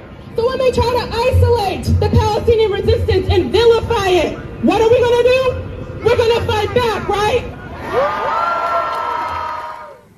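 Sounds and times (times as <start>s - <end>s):
speech: 0.4s - 8.6s
protest crowd cheering: 7.6s - 10.1s.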